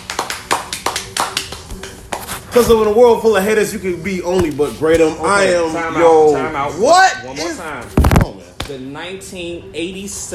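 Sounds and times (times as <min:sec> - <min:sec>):
round of applause: 0:00.0 - 0:01.6
speech: 0:02.6 - 0:10.3.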